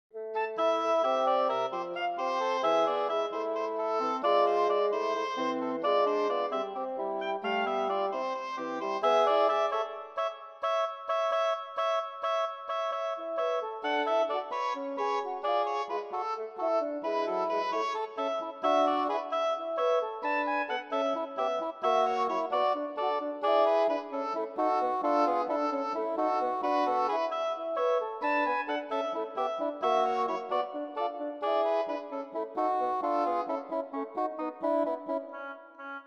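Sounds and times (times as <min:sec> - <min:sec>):
double reed instrument workout: 0:00.4 - 0:36.0.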